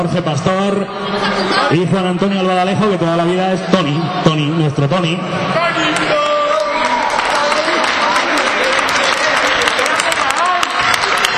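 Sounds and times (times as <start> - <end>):
speech: 0.0 - 6.2
crowd farewell applause: 5.7 - 11.3.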